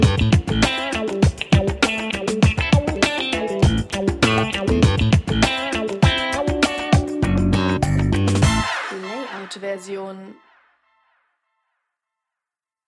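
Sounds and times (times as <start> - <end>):
funk music: 0.0 - 10.1.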